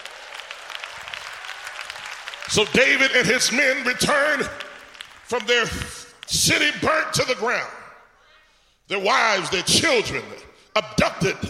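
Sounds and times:
crowd clapping: 0.0 - 6.7
speech: 2.5 - 4.6, 5.3 - 7.8, 8.9 - 11.4.

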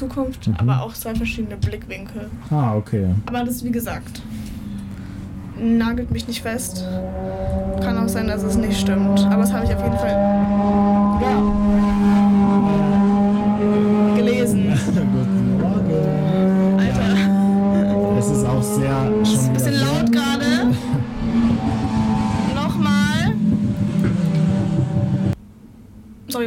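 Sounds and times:
speech: 0.0 - 4.6, 5.6 - 11.7
loud motorcycle engines roaring past and revving: 4.2 - 25.4.

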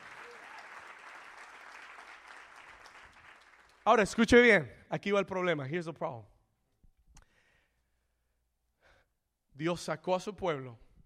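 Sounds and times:
audience applause: 0.0 - 3.8
speech: 3.9 - 6.3, 9.6 - 10.8.

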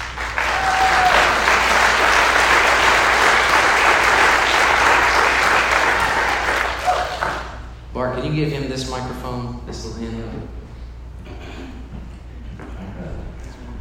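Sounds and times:
audience applause welcoming a guest speaker: 0.0 - 7.6
speech: 8.3 - 10.6.

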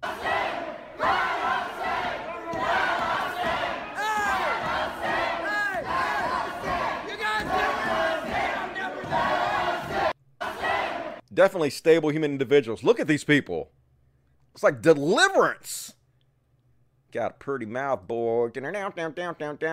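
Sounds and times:
crowd of protesters screaming in public building: 0.0 - 11.2
speech: 11.4 - 13.8, 14.6 - 16.0, 17.1 - 19.7.

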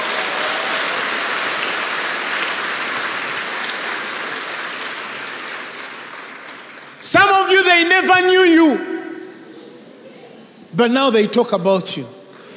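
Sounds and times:
audience clapping: 0.0 - 7.6
speech: 7.0 - 8.9, 10.8 - 12.2.

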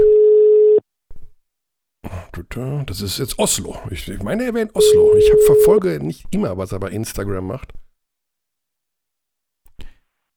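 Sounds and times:
telephone ringing tone on outgoing call: 0.0 - 0.8, 4.8 - 5.8
speech: 2.4 - 7.8.

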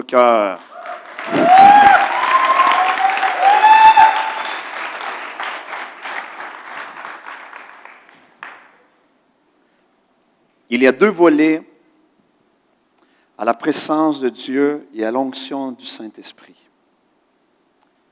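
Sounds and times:
speech: 0.1 - 1.9, 10.7 - 11.7, 13.4 - 16.7
audience applause: 0.6 - 8.8
cheers and whoops: 0.7 - 4.9.

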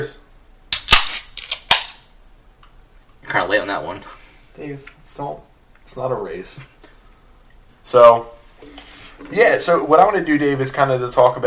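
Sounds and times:
beer can cracking open: 0.7 - 2.0
speech: 3.3 - 6.8, 7.9 - 11.4.

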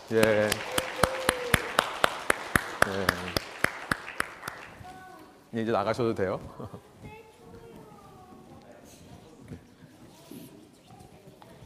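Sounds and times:
audience applause: 0.0 - 4.8
speech: 0.1 - 0.8, 2.9 - 3.4, 5.5 - 6.9.

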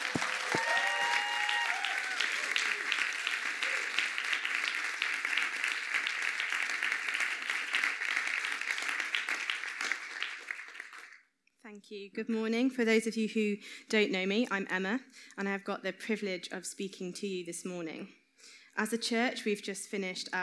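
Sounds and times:
audience applauding: 0.0 - 11.2
vocal whoops: 0.2 - 4.1
speech: 11.8 - 18.2, 18.8 - 20.4.

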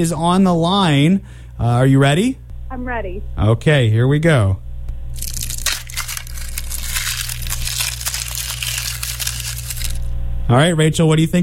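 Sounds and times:
speech: 0.0 - 4.6, 10.5 - 11.4
onion being peeled: 5.2 - 10.1.

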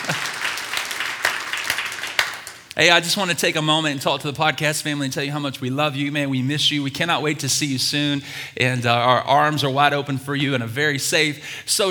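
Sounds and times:
congregation applause at a One Life Church service: 0.0 - 2.8
speech: 2.8 - 11.8.

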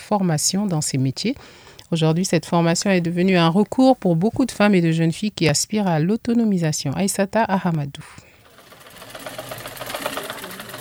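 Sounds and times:
speech: 0.1 - 8.3
manual sewing machines clattering in a sewing training workshop: 8.4 - 10.7.

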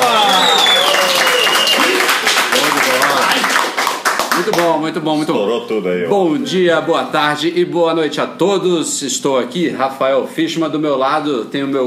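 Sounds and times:
voices cheering and shouting: 0.0 - 2.0
group applauding: 0.0 - 5.0
speech: 4.8 - 11.8.

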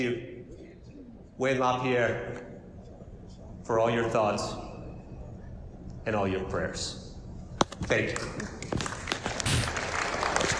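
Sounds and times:
speech: 0.0 - 0.4, 1.4 - 2.5, 3.7 - 4.7, 6.0 - 7.1, 7.8 - 8.8
audience applauding: 8.2 - 10.5.

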